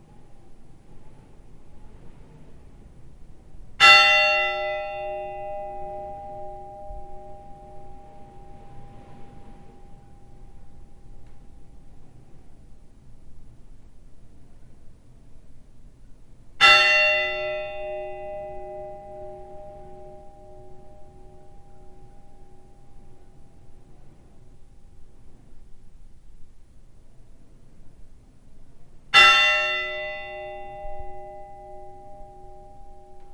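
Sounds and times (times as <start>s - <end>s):
Thingeyrakirkja funeral church bells ringing: 2.7s - 13.4s, 16.6s - 25.9s, 29.0s - 33.3s.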